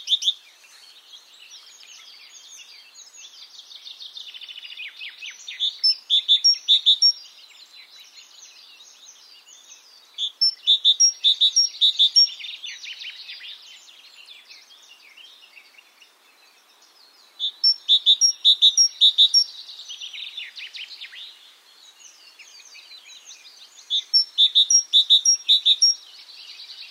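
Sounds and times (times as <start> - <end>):
great tit calls: 5.2 - 7.3, 10.2 - 13.2, 17.4 - 21.2, 23.3 - 26.1.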